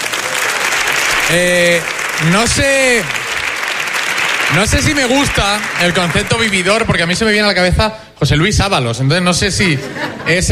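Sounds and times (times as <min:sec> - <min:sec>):
audience applause: 0:00.0 - 0:07.0
speech: 0:01.3 - 0:03.2, 0:04.5 - 0:10.4
laughter: 0:09.6 - 0:10.4.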